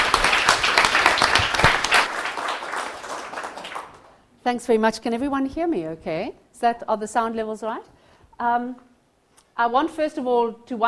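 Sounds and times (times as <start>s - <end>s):
audience applause welcoming a speaker to the stage at a talk: 0.0s - 4.2s
speech: 4.4s - 8.9s, 9.6s - 10.8s.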